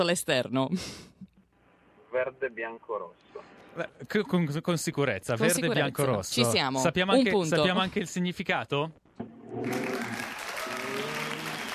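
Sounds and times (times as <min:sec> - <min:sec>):
speech: 0:00.0 - 0:01.2, 0:02.2 - 0:10.2
group applauding: 0:09.6 - 0:11.7.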